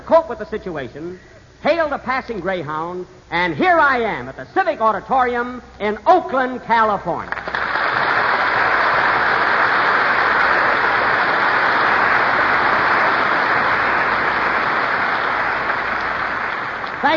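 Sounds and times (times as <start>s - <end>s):
speech: 0.1s - 7.6s
large audience ovation at the Civic Auditorium in Oakland: 7.3s - 17.1s.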